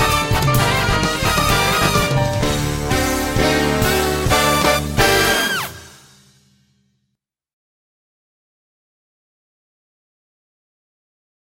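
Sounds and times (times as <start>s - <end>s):
dramatic samba music: 0.0s - 6.4s.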